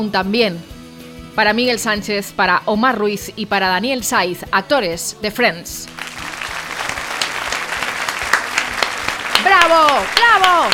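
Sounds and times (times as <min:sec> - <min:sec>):
speech: 0:00.0 - 0:00.8, 0:01.4 - 0:06.3, 0:09.6 - 0:10.7
audience applauding in the Flumen theatre in Valencia: 0:05.9 - 0:10.7.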